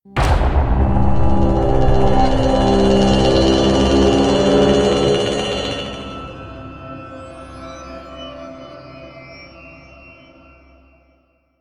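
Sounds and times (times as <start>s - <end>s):
creepy music stinger: 0.2s - 9.3s.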